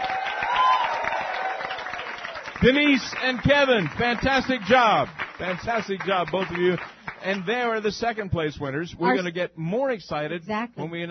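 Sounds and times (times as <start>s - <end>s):
audience applause: 0.0s - 7.8s
speech: 2.6s - 11.0s.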